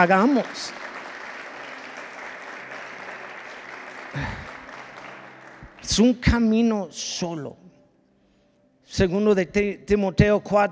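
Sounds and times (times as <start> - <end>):
speech: 0.0 - 0.8, 5.8 - 7.6, 8.9 - 10.7
audience applause: 0.0 - 6.2.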